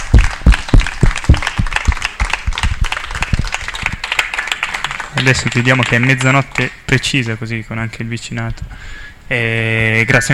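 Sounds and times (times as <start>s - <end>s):
audience applause: 0.0s - 6.6s
speech: 5.2s - 10.3s.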